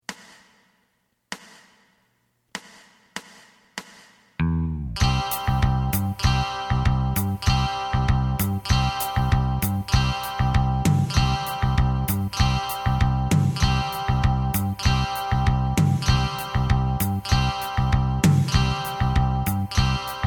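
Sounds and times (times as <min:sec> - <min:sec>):
lead melody: 0:04.4 - 0:20.2.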